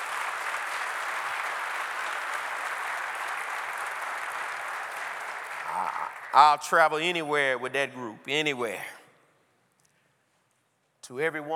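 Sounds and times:
audience applauding the worship team: 0.0s - 7.1s
speech: 5.8s - 9.0s, 11.1s - 11.5s.

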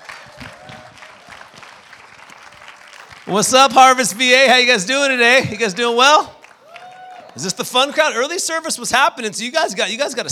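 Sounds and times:
audience applause: 0.0s - 4.0s, 5.9s - 8.4s
speech: 3.3s - 6.4s, 7.4s - 10.3s.

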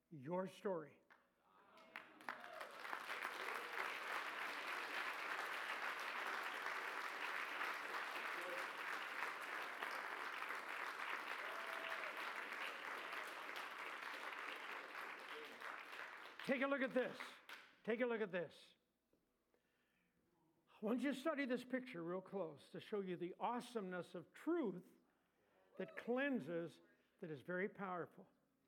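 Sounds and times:
speech: 0.1s - 1.0s, 16.5s - 18.8s, 20.8s - 25.0s, 25.8s - 28.4s
church congregation clapping: 1.1s - 17.8s.

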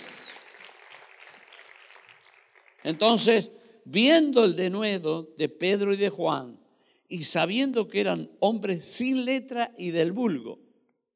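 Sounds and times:
church congregation applauding praising the Lord: 0.0s - 3.5s
speech: 2.8s - 10.6s.

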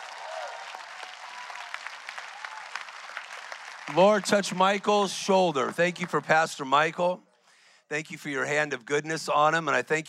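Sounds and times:
audience clapping and shouting: 0.0s - 6.4s
speech: 3.9s - 7.3s, 7.9s - 10.0s.

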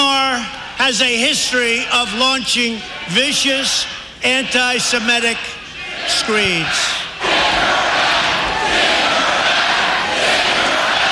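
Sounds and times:
speech: 0.8s - 7.0s
crowd chanting at a rally: 4.3s - 11.1s.

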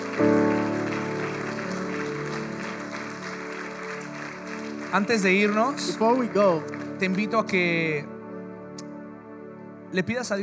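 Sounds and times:
church congregation applauding: 0.0s - 8.2s
sustained musical chord: 0.0s - 10.4s
speech: 4.9s - 8.1s, 9.9s - 10.4s.

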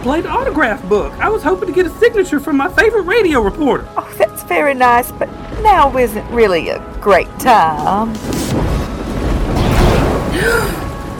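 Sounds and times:
speech: 0.0s - 8.7s, 10.4s - 10.8s
thunderclap: 5.2s - 11.1s
lightning strike: 8.1s - 11.1s.

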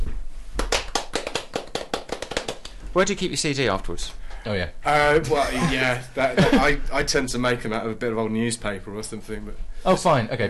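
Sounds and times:
hands clapping: 0.6s - 2.9s
speech: 2.9s - 10.4s.

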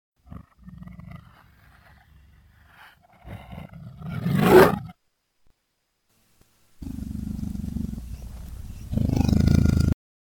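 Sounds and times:
leopard growl played in reverse: 0.2s - 5.0s, 6.8s - 10.0s.

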